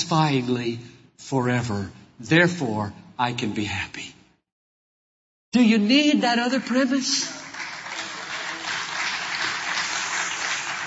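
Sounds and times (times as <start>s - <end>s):
speech: 0.1s - 4.1s, 5.5s - 7.4s
audience applause: 7.3s - 10.8s.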